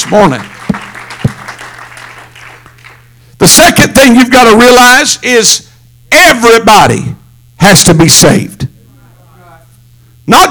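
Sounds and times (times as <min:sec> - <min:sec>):
audience applause: 0:00.0 - 0:03.2
speech: 0:00.1 - 0:00.5, 0:03.4 - 0:08.7, 0:10.3 - 0:10.5.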